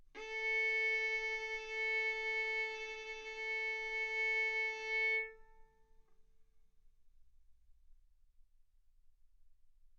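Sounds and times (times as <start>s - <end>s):
violin bowed mezzo-forte on the A string, A4 and B4: 0.2s - 5.8s.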